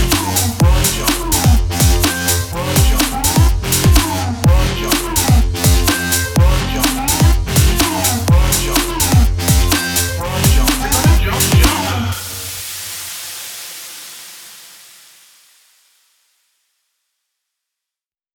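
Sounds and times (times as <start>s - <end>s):
bass house music: 0.0s - 12.6s.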